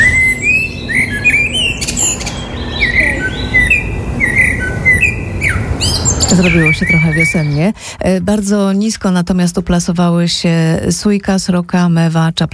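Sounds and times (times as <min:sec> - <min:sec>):
common blackbird singing: 0:00.0 - 0:07.7
speech: 0:06.4 - 0:12.5.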